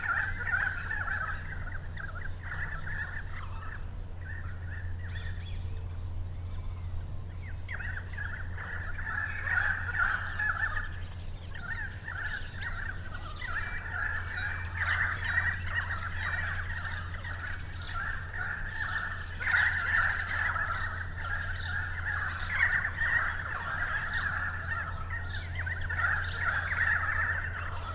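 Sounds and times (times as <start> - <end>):
currawongs giving loud warbling calls: 0.0 - 27.9.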